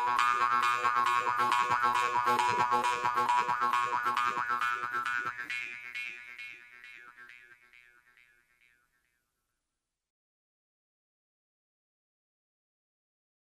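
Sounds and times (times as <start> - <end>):
jew harp: 0.0 - 9.4.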